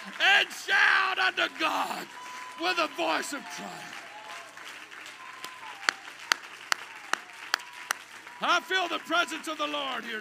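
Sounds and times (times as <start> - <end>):
church congregation hand claps during a service: 0.0 - 10.2
speech: 0.1 - 4.0, 8.4 - 10.2.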